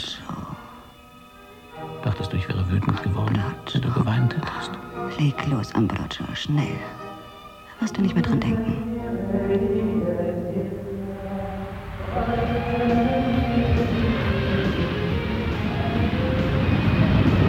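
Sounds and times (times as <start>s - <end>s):
speech: 2.2s - 7.0s, 7.9s - 10.2s
jet aircraft engine roaring with droning tones: 10.9s - 17.4s.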